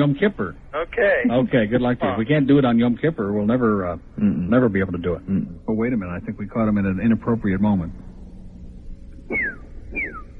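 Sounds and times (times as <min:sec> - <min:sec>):
speech: 0:00.0 - 0:08.1, 0:09.3 - 0:10.2
bird sounds: 0:09.2 - 0:10.3.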